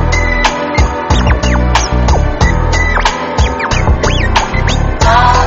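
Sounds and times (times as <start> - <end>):
turntable scratch mix: 0.2 - 5.3.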